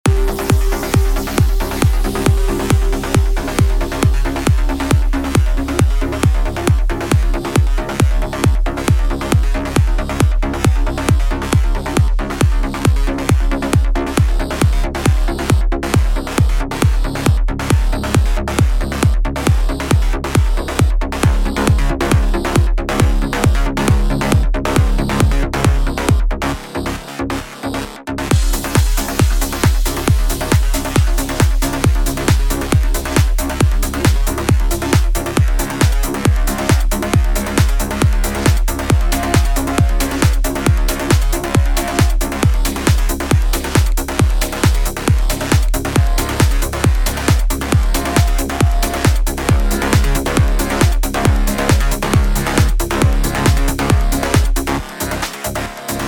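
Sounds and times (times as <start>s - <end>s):
bass: 0.0s - 56.0s.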